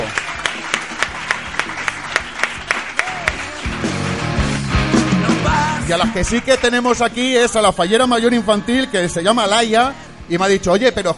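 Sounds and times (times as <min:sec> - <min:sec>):
audience applause: 0:00.0 - 0:07.4
speech: 0:05.9 - 0:11.1.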